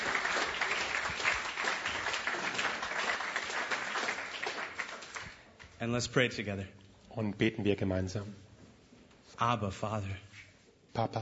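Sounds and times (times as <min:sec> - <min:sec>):
church congregation applauding: 0:00.0 - 0:05.8
speech: 0:05.8 - 0:08.4, 0:09.4 - 0:10.3, 0:11.0 - 0:11.1.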